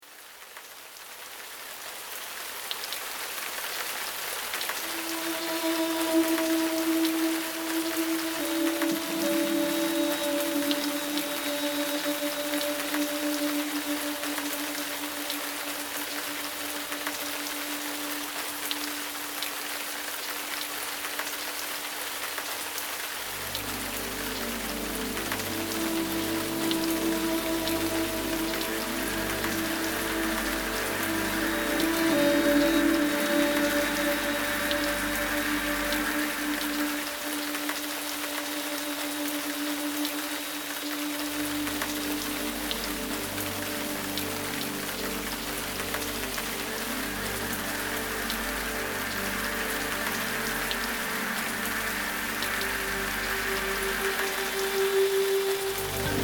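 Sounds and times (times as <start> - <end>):
rainforest ambience: 0.0 - 56.2.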